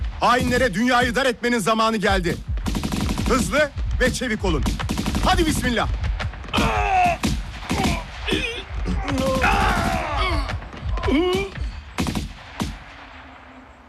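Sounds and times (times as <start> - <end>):
gunfire in a combat scene: 0.0 - 1.3, 2.1 - 13.8
speech: 0.2 - 2.5, 3.3 - 6.8
soldiers shouting: 6.5 - 11.7
people groaning: 6.5 - 11.8.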